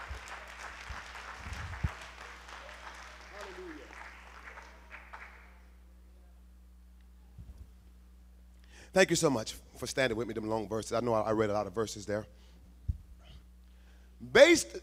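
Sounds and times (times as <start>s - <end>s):
audience clapping hands: 0.0s - 5.8s
speech: 8.9s - 12.4s, 14.3s - 14.8s.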